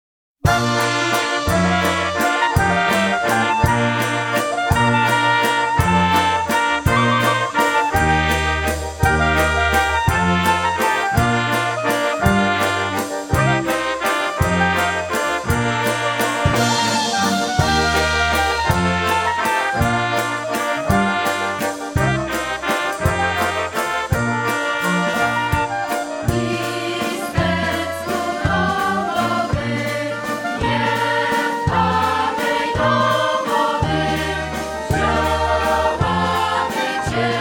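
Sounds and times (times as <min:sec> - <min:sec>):
waltz music: 0:00.5 - 0:37.3.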